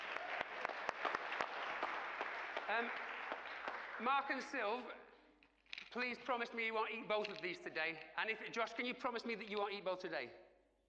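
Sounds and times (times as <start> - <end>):
crowd applause: 0.0 - 4.6
speech: 2.7 - 3.1, 4.0 - 5.0, 6.0 - 10.4.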